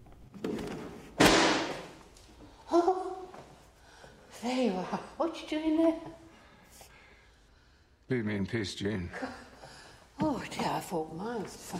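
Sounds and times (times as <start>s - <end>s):
book knocked over with thuds: 1.2s - 1.9s
speech: 4.4s - 6.2s, 8.1s - 9.4s, 10.4s - 11.7s.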